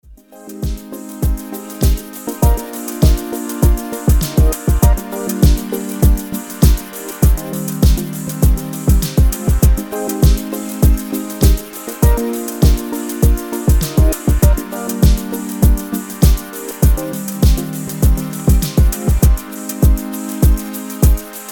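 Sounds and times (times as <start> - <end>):
house music instrumental: 0.0 - 21.4.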